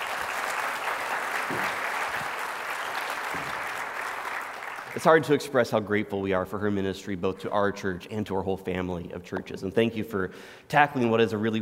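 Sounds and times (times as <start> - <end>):
audience applause: 0.0 - 5.3
speech: 1.5 - 1.8, 5.0 - 11.6.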